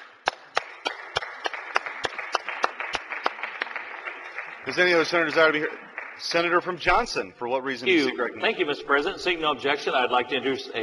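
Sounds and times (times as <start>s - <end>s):
sharp steady claps: 0.0s - 7.1s
round of applause in the Senate: 0.0s - 7.2s
speech: 4.7s - 10.8s.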